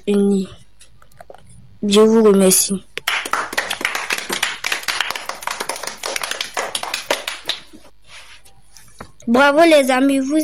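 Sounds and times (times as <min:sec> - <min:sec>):
speech: 0:00.0 - 0:00.6, 0:01.8 - 0:02.9, 0:09.3 - 0:10.4
audience clapping: 0:03.0 - 0:07.9.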